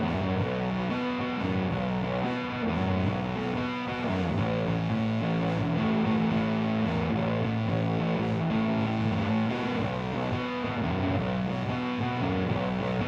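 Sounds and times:
bass recorded with stereo SM57 microphones: 0.0s - 13.0s.

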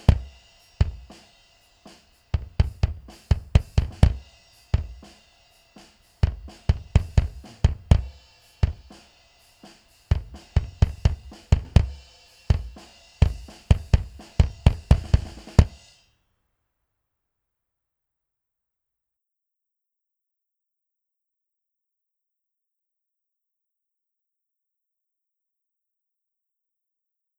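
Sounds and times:
bass drum: 0.0s - 1.3s, 1.9s - 5.2s, 6.2s - 9.1s, 10.1s - 15.8s.

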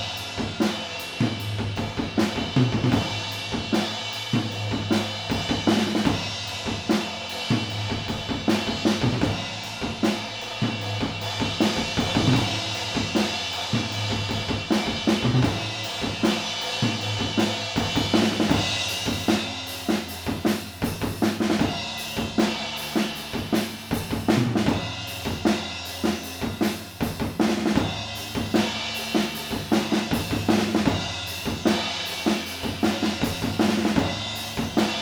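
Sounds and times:
drums: 0.0s - 35.0s.

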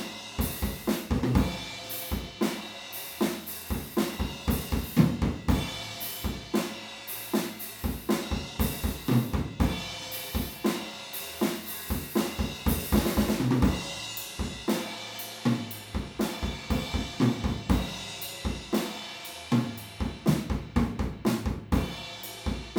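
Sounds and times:
drums recorded with PZM omni stereo microphones: 0.0s - 22.7s.

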